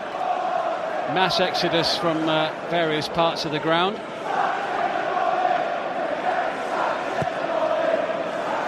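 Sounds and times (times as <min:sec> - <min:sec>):
football fans chanting: 0:00.1 - 0:01.8, 0:04.2 - 0:08.6
speech: 0:01.1 - 0:04.4.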